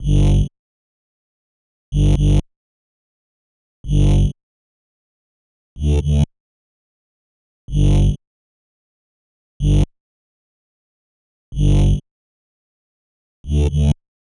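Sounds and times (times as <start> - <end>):
bass in G: 0.0 - 0.5, 1.9 - 2.4, 3.8 - 4.4, 5.8 - 6.3, 7.7 - 8.2, 9.6 - 9.9, 11.5 - 12.0, 13.4 - 14.0.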